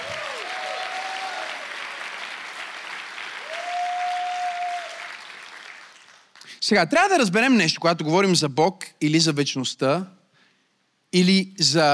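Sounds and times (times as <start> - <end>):
crowd applauding loudly: 0.0 - 6.5
speech: 6.7 - 10.2, 11.1 - 11.9.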